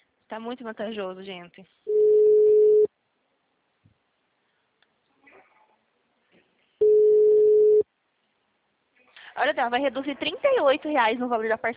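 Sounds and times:
speech: 0:00.3 - 0:02.0, 0:09.4 - 0:11.7
ringback tone of an outgoing telephone call: 0:01.9 - 0:02.9, 0:06.8 - 0:07.8.

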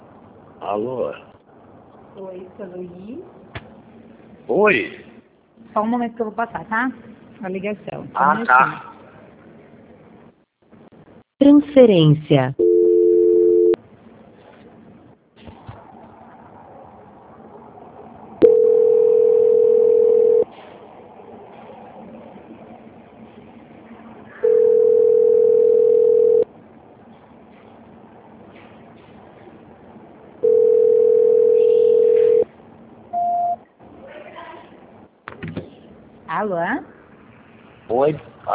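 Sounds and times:
faint noise: 0:00.0 - 0:38.5
speech: 0:00.6 - 0:01.3, 0:02.2 - 0:03.4, 0:04.5 - 0:05.0, 0:05.6 - 0:08.9, 0:11.4 - 0:12.7
ringback tone of an unanswered phone call: 0:12.6 - 0:13.8, 0:18.4 - 0:20.5, 0:24.4 - 0:26.5, 0:30.4 - 0:32.5.

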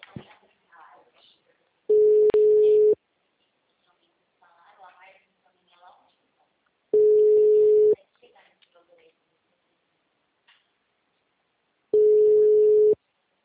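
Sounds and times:
ringback tone of an unanswered phone call: 0:01.9 - 0:03.0, 0:07.0 - 0:08.0, 0:12.0 - 0:13.0.

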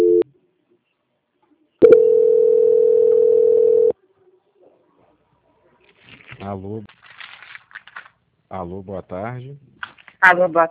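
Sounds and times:
steady loud low-pitched electronic telephone tone during call transfer: 0:00.0 - 0:00.2, 0:01.8 - 0:04.0
speech: 0:06.5 - 0:07.2, 0:08.5 - 0:10.6.

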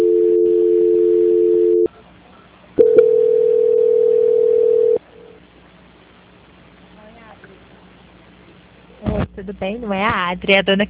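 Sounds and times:
telephone dial tone during a call transfer: 0:00.0 - 0:01.9, 0:02.8 - 0:05.0
speech: 0:09.4 - 0:10.8.

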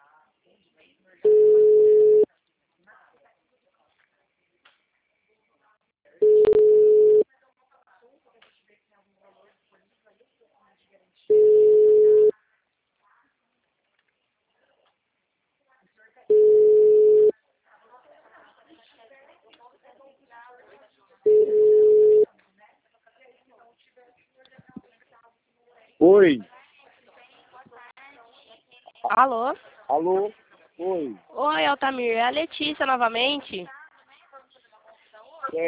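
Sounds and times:
telephone tones after a call is hung up: 0:01.2 - 0:02.3, 0:06.2 - 0:07.2, 0:11.3 - 0:12.3, 0:16.3 - 0:17.3, 0:21.3 - 0:22.3
speech: 0:26.0 - 0:26.5, 0:29.1 - 0:33.8.

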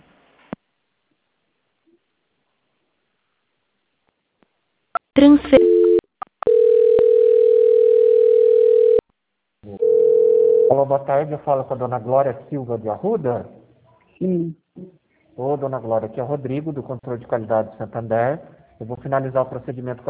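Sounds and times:
speech: 0:05.2 - 0:05.6, 0:10.8 - 0:13.6, 0:14.2 - 0:20.0
telephone line tones during a call transfer to a bank's audit department: 0:05.6 - 0:09.0, 0:09.8 - 0:10.8.

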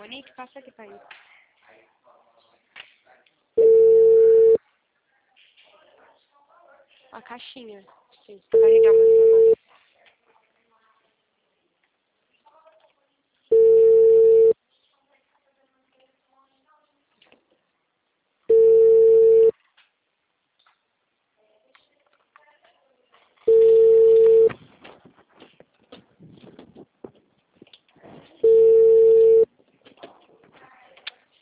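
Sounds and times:
speech: 0:00.1 - 0:01.3, 0:07.1 - 0:09.4
unanswered telephone call ringback tones: 0:03.6 - 0:04.6, 0:08.6 - 0:09.6, 0:13.5 - 0:14.6, 0:18.5 - 0:19.5, 0:23.5 - 0:24.5, 0:28.4 - 0:29.5.

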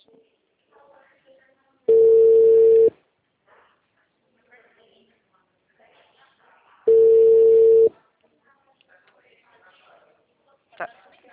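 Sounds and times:
outgoing telephone call ringing tone: 0:01.9 - 0:02.9, 0:06.9 - 0:07.9.

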